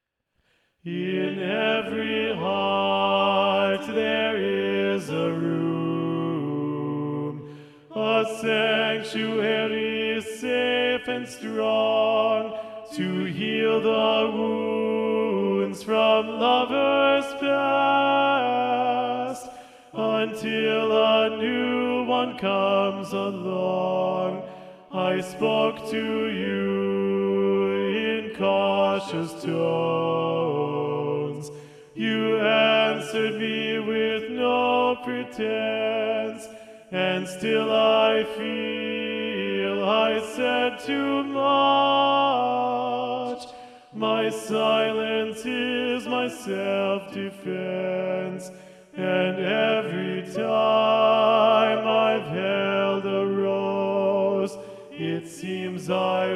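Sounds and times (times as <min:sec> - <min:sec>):
tenor singing: 0:00.9 - 0:56.3.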